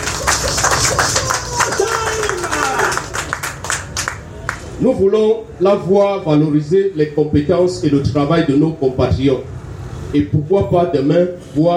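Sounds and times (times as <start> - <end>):
audience clapping at an event in Cameroon: 0.0 - 4.8
speech: 4.8 - 11.7.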